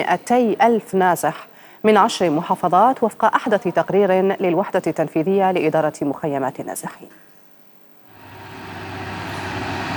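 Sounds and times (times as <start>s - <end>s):
speech: 0.0s - 7.3s
trucks rumbling along the winding Hayja al-Abd mountain road in Taiz, Yemen: 8.2s - 9.9s.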